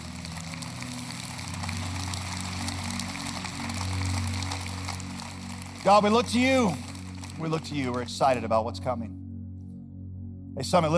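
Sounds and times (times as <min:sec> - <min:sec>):
audience clapping: 0:00.0 - 0:08.6
speech: 0:05.8 - 0:09.2, 0:10.6 - 0:10.9.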